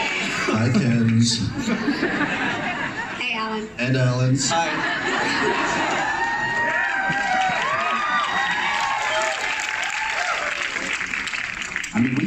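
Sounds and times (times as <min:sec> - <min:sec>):
crowd cheers and shouts: 0:00.0 - 0:00.4, 0:05.5 - 0:11.0
crowd applauding: 0:00.0 - 0:02.2, 0:05.1 - 0:12.2
laughter: 0:00.0 - 0:03.4, 0:04.5 - 0:08.6, 0:11.9 - 0:12.2
speech: 0:00.5 - 0:02.8, 0:03.4 - 0:06.1, 0:12.0 - 0:12.2.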